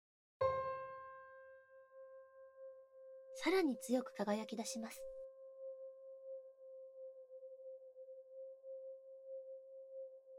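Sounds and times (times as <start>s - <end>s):
piano note: 0.4s - 2.8s
speech: 3.4s - 5.2s.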